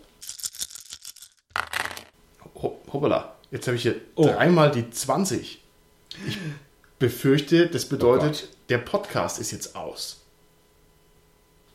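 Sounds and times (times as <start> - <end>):
dice rattling: 0.3 - 2.1
speech: 3.0 - 5.6, 6.2 - 10.2.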